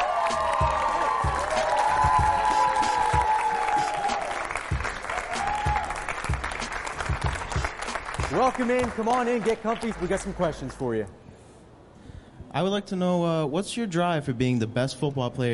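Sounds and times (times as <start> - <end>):
audience applause for a football player at a live show: 0.0 - 10.9
speech: 8.4 - 11.2, 12.5 - 15.5.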